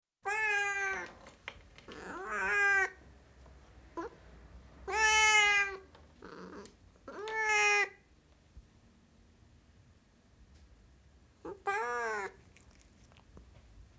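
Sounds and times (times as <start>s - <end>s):
Siamese cat meowing: 0.2s - 1.2s, 1.9s - 3.0s, 4.8s - 8.0s, 11.5s - 13.1s.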